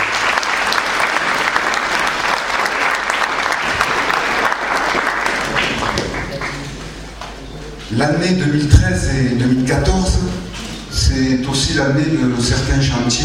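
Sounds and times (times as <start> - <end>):
audience ovation applause for retirees: 0.0 - 7.0
speech: 8.0 - 10.4, 11.2 - 13.2.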